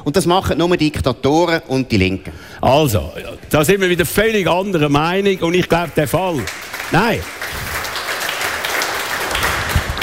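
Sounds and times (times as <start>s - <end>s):
speech: 0.0s - 7.7s
audience clapping at a political debate: 6.0s - 10.0s.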